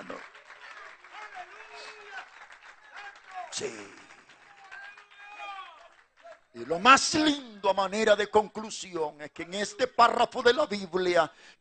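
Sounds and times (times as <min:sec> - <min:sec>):
audience applause: 0:00.0 - 0:07.5
speech: 0:03.6 - 0:04.0, 0:06.6 - 0:11.5.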